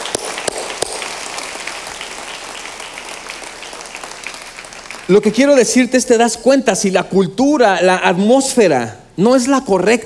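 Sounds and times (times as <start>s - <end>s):
audience applause: 0.0s - 5.6s
speech: 5.1s - 10.0s.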